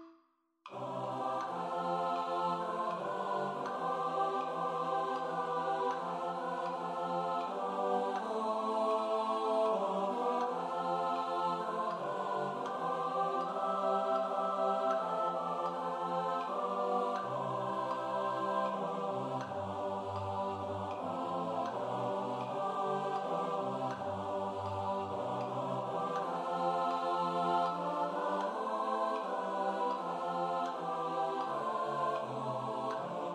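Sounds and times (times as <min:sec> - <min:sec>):
SATB four-part choir singing: 0:00.7 - 0:33.3.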